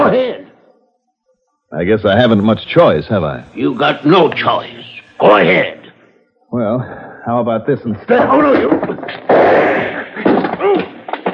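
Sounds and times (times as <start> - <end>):
speech: 1.7 - 5.8, 6.5 - 10.3
gunshot in a radio drama shooting a gun out of someone's hand: 8.6 - 11.3.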